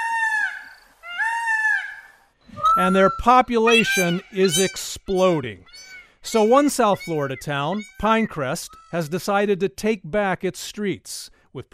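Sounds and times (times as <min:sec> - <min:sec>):
peacock shrill nasal cries: 0:00.0 - 0:09.0
speech: 0:02.8 - 0:11.7.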